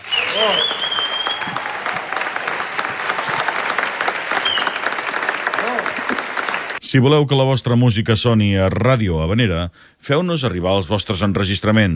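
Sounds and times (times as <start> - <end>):
audience applause: 0.0 - 6.8
speech: 0.4 - 0.8, 6.9 - 11.9.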